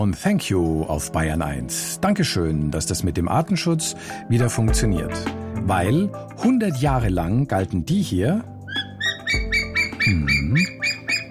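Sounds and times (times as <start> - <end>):
speech: 0.0 - 8.5, 10.1 - 10.7
white-tailed eagle calling: 8.6 - 11.3.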